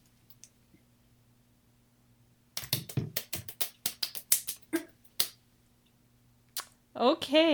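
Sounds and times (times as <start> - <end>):
hand clapping with three fingers: 2.6 - 5.4.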